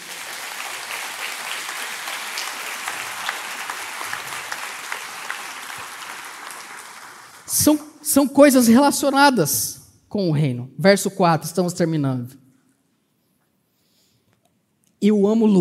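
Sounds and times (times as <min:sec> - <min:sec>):
audience applauding: 0:00.0 - 0:07.7
speech: 0:07.6 - 0:12.4, 0:15.0 - 0:15.5.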